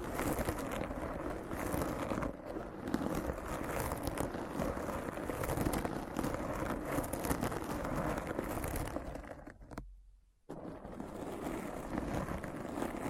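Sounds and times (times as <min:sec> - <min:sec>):
rough scratching: 0:00.0 - 0:09.8, 0:10.5 - 0:13.0.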